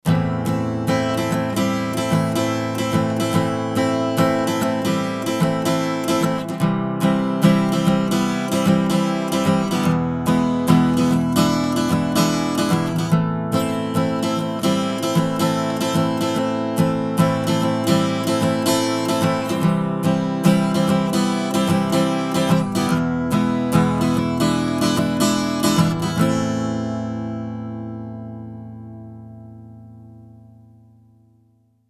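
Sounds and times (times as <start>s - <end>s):
guitar: 0.0s - 31.8s.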